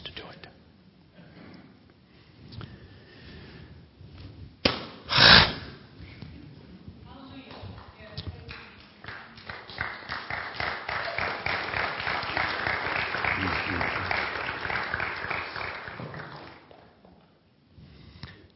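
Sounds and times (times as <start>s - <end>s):
crowd applauding: 7.8s - 17.0s
crowd cheering: 9.1s - 16.7s.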